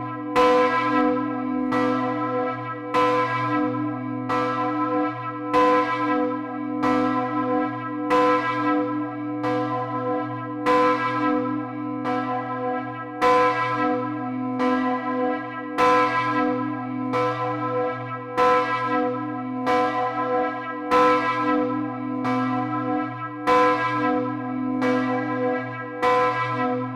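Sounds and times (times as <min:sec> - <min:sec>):
church bell ringing in Ettiswil: 0:00.0 - 0:26.9.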